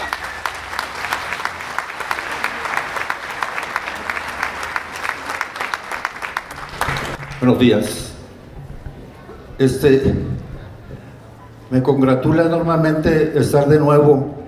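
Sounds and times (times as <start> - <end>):
crowd at a congress applauding a speaker from the Yaqui people: 0.0 - 7.6
speech: 7.4 - 8.1, 9.6 - 10.5, 11.7 - 14.4.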